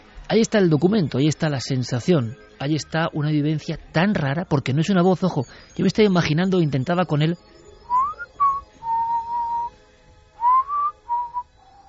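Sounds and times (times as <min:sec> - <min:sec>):
speech: 0:00.3 - 0:07.6
person imitating a whistle: 0:07.8 - 0:09.7, 0:10.4 - 0:11.8.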